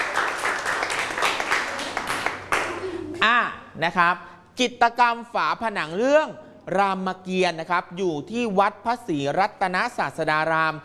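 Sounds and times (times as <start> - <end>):
classroom applause for a group: 0.0 - 3.2
speech: 3.8 - 10.8.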